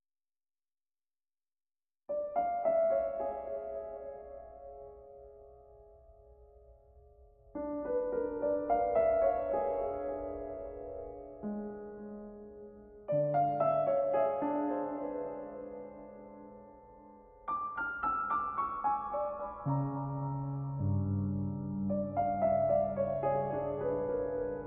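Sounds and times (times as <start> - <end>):
solo piano: 2.1 - 24.6.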